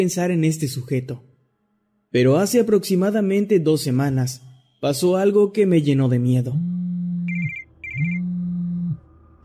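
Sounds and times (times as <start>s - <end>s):
speech: 0.0s - 1.3s, 2.1s - 6.8s
telephone ringing with an electronic tone: 7.3s - 9.0s.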